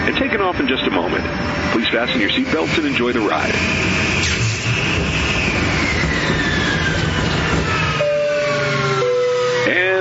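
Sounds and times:
aircraft engine sputtering and failing: 0:00.0 - 0:10.0
speech: 0:00.2 - 0:04.0.

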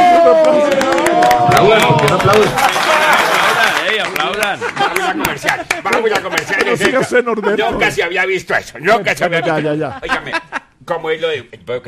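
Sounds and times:
crowd clapping: 0:00.0 - 0:07.0
speech: 0:01.6 - 0:03.0, 0:04.5 - 0:11.8
laughter: 0:01.6 - 0:08.2, 0:09.1 - 0:10.8.

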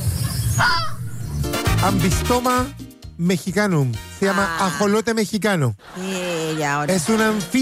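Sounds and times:
chinchilla call: 0:00.2 - 0:01.4
speech: 0:01.9 - 0:07.5.

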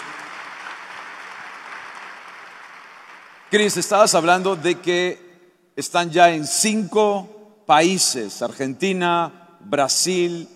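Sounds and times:
audience applause: 0:00.0 - 0:04.2
speech: 0:03.5 - 0:05.2, 0:05.8 - 0:10.5.

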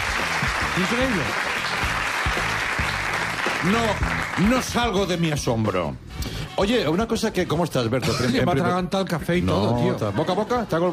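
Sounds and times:
crowd clapping: 0:00.0 - 0:05.2
speech: 0:00.8 - 0:01.5, 0:03.6 - 0:06.0, 0:06.6 - 0:10.9.

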